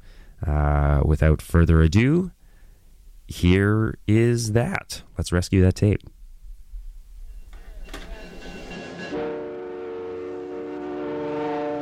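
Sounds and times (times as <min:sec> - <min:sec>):
speech: 0:00.4 - 0:02.4, 0:03.3 - 0:06.2
passenger train rumbling along the railroad: 0:07.7 - 0:11.8
train horn blast: 0:08.6 - 0:11.8.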